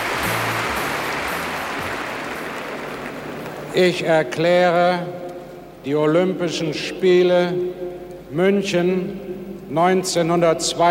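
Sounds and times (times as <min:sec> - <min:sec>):
stadium crowd cheering: 0:00.0 - 0:03.8
speech: 0:03.7 - 0:05.2, 0:05.8 - 0:10.8.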